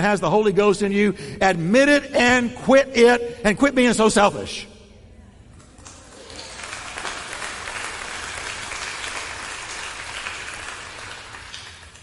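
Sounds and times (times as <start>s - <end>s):
speech: 0.0s - 4.7s
tepid audience clapping: 5.6s - 12.0s.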